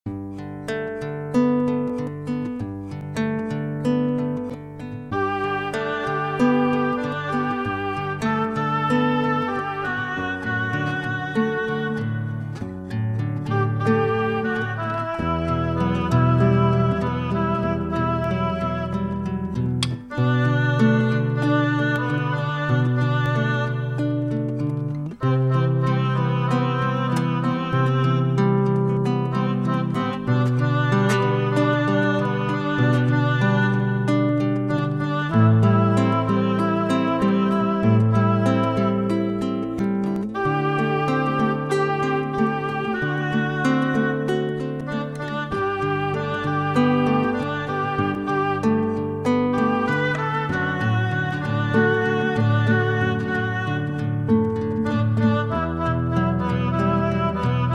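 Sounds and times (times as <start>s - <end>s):
instrumental melody backing track for a prayer: 0.1s - 57.7s.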